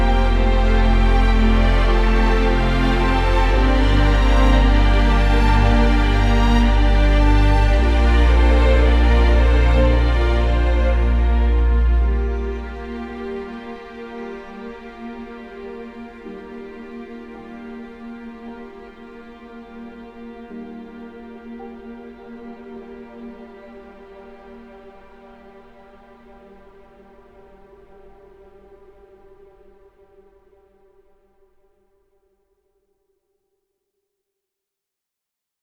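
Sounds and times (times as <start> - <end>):
orchestral music: 0.0 - 28.4.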